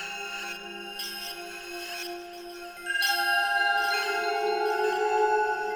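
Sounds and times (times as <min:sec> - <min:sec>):
bells ringing: 0:02.4 - 0:05.7.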